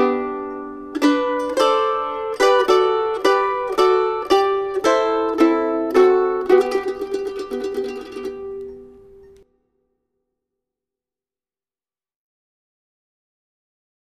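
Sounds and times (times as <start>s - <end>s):
mandolin playing a Christmas carol: 0.0s - 9.4s.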